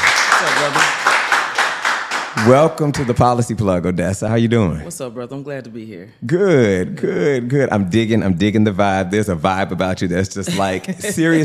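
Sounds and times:
audience clapping: 0.0 - 3.5
speech: 2.4 - 11.4.

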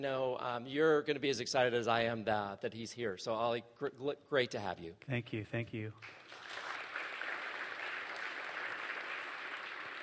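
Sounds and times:
speech: 0.0 - 6.5
audience clapping: 6.0 - 10.0.

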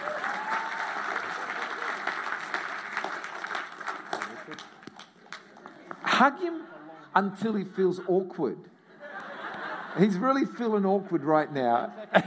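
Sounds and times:
audience clapping: 0.0 - 6.0
speech: 6.2 - 8.7, 10.0 - 12.2
laughter: 8.9 - 12.2.

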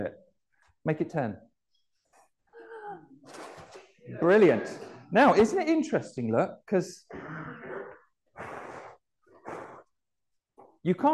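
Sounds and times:
speech: 0.8 - 1.5, 4.1 - 7.7, 10.8 - 11.1
breath blown to make a spinning toy turn: 7.1 - 10.1.

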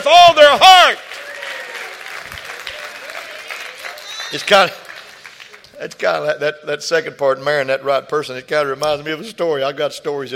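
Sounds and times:
audience clapping hands: 0.7 - 6.0
speech: 4.3 - 4.8, 5.8 - 10.3.

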